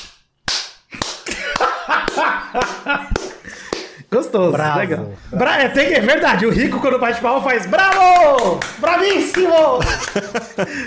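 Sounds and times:
vigorous hand clapping: 0.0 - 4.0, 7.6 - 10.6
laughter: 1.3 - 3.6, 9.5 - 10.8
speech: 2.2 - 10.8.

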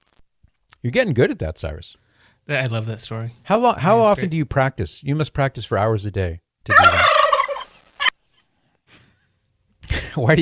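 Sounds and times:
speech: 0.8 - 7.0, 10.2 - 10.4
turkey gobbling: 6.7 - 8.2.

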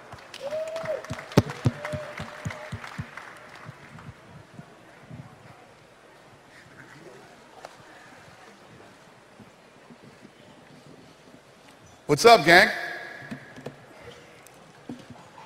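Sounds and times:
audience applause: 0.0 - 4.3
speech: 12.1 - 12.8.

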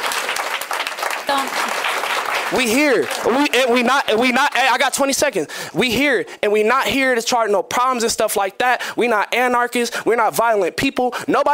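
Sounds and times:
crowd applause: 0.0 - 5.1
speech: 2.5 - 11.5.

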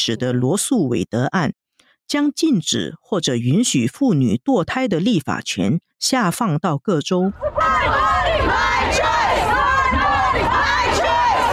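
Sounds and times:
speech: 0.0 - 11.1
protest crowd in the United States shouting and cheering: 7.3 - 11.5.

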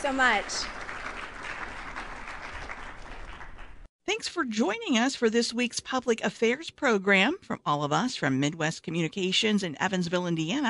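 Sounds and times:
speech: 0.0 - 0.8, 4.1 - 10.6
audience applause: 0.0 - 3.9.

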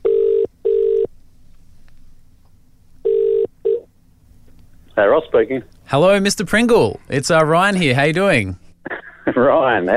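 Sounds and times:
phone line double ring: 0.0 - 1.1, 3.1 - 3.8
faint low hum: 0.0 - 9.9
speech: 5.0 - 8.6, 9.4 - 9.9.

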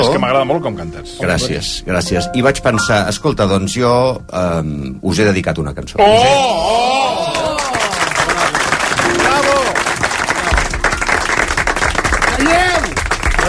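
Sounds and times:
speech: 0.1 - 7.4
excited voices shouting and whooping: 6.0 - 8.0
crowd clapping: 7.1 - 13.4.

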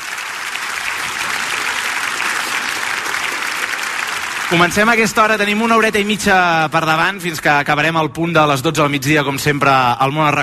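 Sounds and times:
theatre audience applause: 0.0 - 6.9
speech: 4.5 - 10.4.

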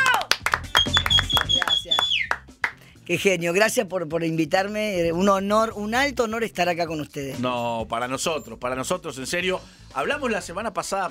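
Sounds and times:
applause welcoming a guest: 0.0 - 2.8
speech: 3.1 - 11.1.

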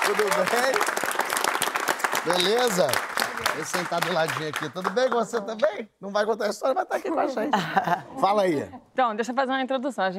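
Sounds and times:
round of applause: 0.0 - 5.6
speech: 0.1 - 1.1, 2.2 - 10.1
laughter: 6.9 - 8.7.

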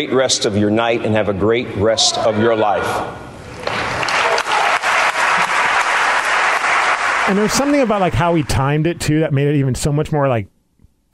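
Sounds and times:
speech: 0.0 - 3.9, 7.3 - 10.5
audience applause at awards ceremony: 3.5 - 9.0.

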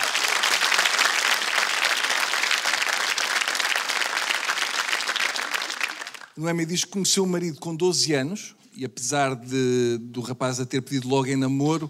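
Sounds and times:
audience applause: 0.0 - 6.4
speech: 6.4 - 11.8.

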